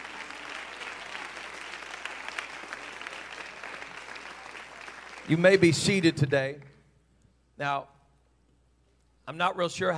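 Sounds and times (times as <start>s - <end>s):
audience applause: 0.0s - 5.6s
speech: 5.3s - 6.7s, 7.6s - 7.9s, 9.3s - 9.9s.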